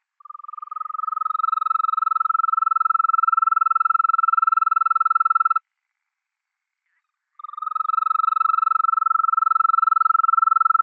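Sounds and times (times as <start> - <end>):
toad calling: 0.2 - 5.6, 7.0 - 10.8.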